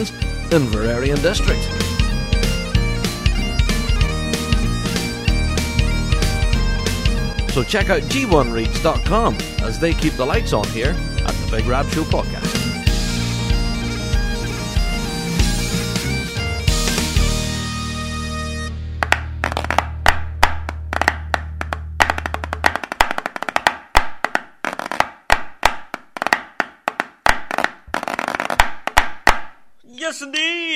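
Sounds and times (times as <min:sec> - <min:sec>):
speech: 0:00.0 - 0:01.9, 0:07.6 - 0:12.6
music: 0:00.0 - 0:23.6
wooden sticks tapped together and thrown: 0:19.0 - 0:29.6.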